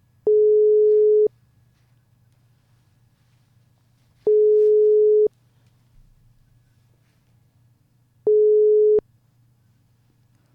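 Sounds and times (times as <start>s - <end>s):
faint low hum: 0.0s - 10.5s
ringback tone of outgoing telephone call: 0.3s - 1.3s, 4.3s - 5.3s, 8.3s - 9.0s.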